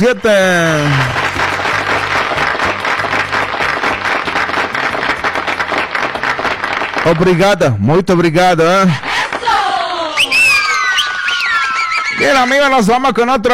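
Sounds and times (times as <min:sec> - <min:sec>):
speech: 0:00.0 - 0:01.2, 0:07.1 - 0:09.1, 0:12.2 - 0:13.5
audience applause: 0:00.5 - 0:07.4, 0:09.1 - 0:12.9.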